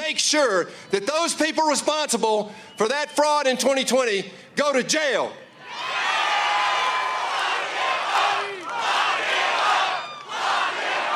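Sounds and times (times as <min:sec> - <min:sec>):
speech: 0:00.1 - 0:05.9
rally crowd chanting: 0:06.0 - 0:11.1.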